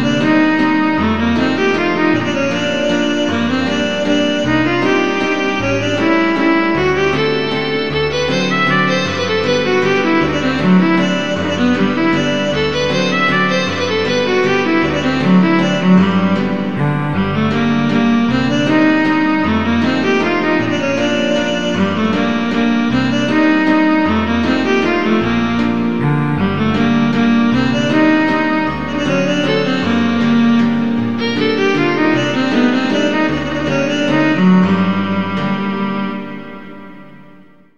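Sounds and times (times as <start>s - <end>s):
piano playing a waltz in A minor: 0.0s - 37.7s
viola playing a waltz in A minor: 0.0s - 37.7s.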